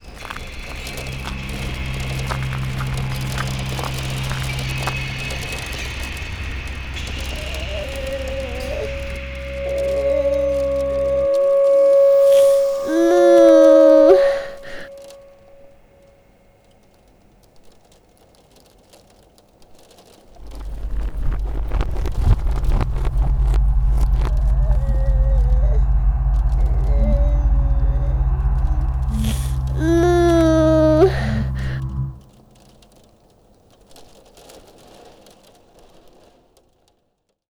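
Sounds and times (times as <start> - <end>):
breathing: 0.1 - 15.5, 20.5 - 32.2.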